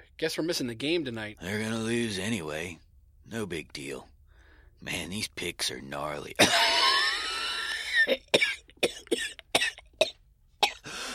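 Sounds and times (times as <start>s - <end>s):
speech: 0.2s - 4.1s, 4.8s - 7.0s
person coughing: 6.4s - 11.1s
raspy breath: 10.8s - 11.1s.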